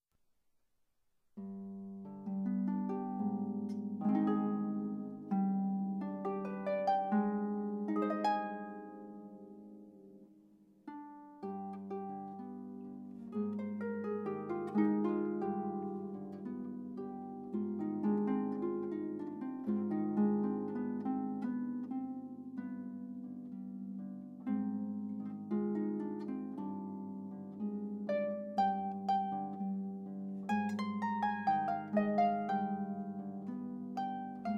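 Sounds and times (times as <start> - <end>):
solo harp: 1.4 - 34.5.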